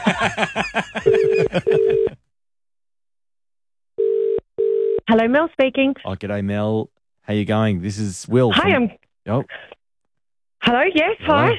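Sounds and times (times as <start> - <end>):
laughter: 0.0 - 2.2
speech: 0.1 - 2.0, 5.1 - 9.8, 10.6 - 11.5
telephone dialing tones: 1.0 - 2.1, 4.0 - 5.0.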